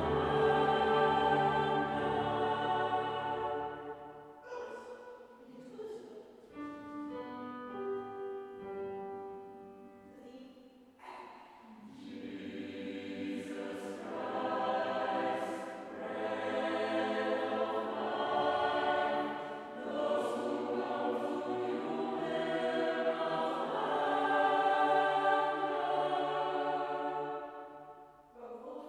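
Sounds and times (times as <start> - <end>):
Taizé SATB choir singing: 0.0 - 4.4, 11.7 - 28.8.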